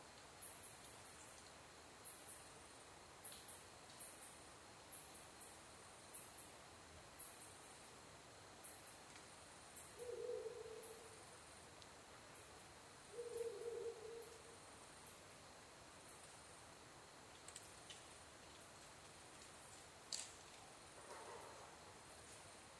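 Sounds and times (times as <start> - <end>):
background hiss: 0.0 - 22.7
Ural Owl hooting: 10.0 - 11.2, 13.1 - 14.5.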